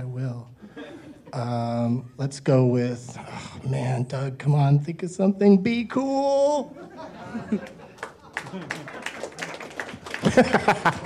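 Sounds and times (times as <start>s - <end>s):
speech: 1.4s - 7.8s, 8.5s - 8.8s, 10.3s - 11.0s
people chuckling: 6.7s - 11.0s
audience clapping: 7.5s - 11.0s.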